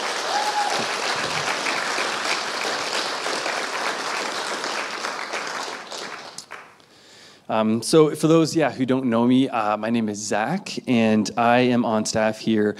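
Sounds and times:
round of applause: 0.0 - 6.8
speech: 7.5 - 12.7.

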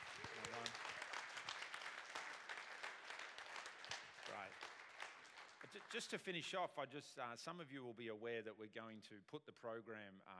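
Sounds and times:
audience applause: 0.0 - 6.2
speech: 4.4 - 4.7, 5.7 - 10.3.

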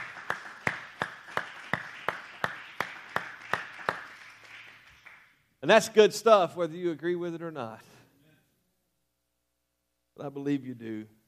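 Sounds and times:
audience clapping in unison: 0.0 - 5.5
speech: 5.6 - 7.9, 10.2 - 11.2.

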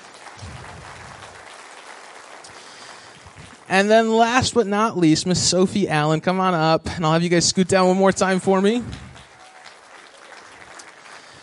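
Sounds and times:
audience applause: 0.0 - 4.1, 8.3 - 11.4
speech: 3.7 - 9.1.

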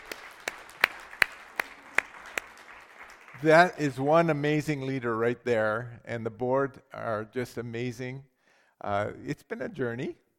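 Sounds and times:
audience applause: 0.0 - 3.9
speech: 3.4 - 10.2.

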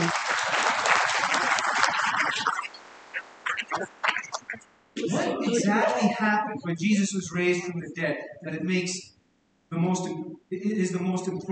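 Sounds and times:
applause: 0.0 - 2.8, 3.5 - 4.6
laughter: 0.0 - 2.8, 3.4 - 8.2
speech: 5.6 - 9.1, 9.7 - 11.5.

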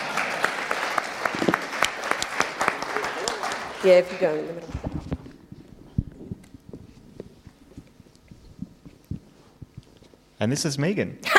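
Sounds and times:
audience applause: 0.0 - 4.8
speech: 3.8 - 4.8, 10.4 - 11.3.

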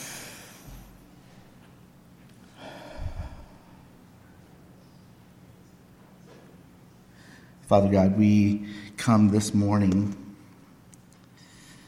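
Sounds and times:
deep breath in and out at a morning prayer gathering: 2.5 - 3.9, 7.1 - 7.6, 11.4 - 11.8
speech: 7.7 - 10.2.

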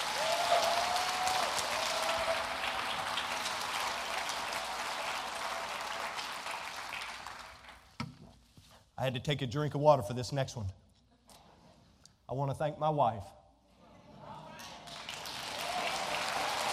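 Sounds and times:
large audience applause: 0.0 - 7.9, 14.6 - 16.7
speech: 9.0 - 10.8, 12.3 - 13.4.

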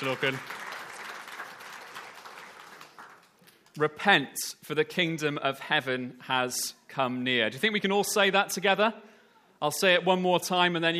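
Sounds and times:
speech: 0.0 - 0.6, 3.8 - 10.9
audience applause: 0.0 - 3.4.

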